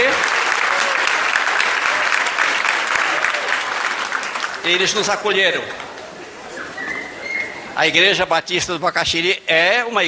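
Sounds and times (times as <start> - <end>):
audience applauding at a Baptist church in Curitiba: 0.0 - 6.0
speech: 4.6 - 5.9, 7.8 - 10.0.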